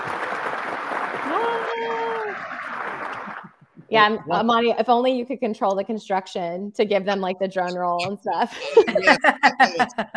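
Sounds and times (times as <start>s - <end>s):
applause sound effect: 0.0s - 3.8s
speech: 3.9s - 10.1s
laughter: 8.0s - 10.1s.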